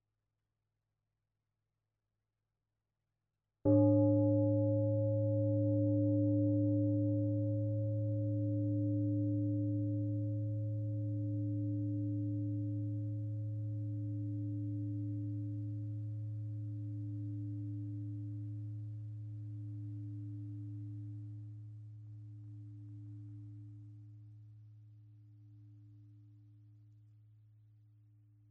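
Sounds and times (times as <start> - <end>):
meditation bell ringing: 3.7 - 21.6.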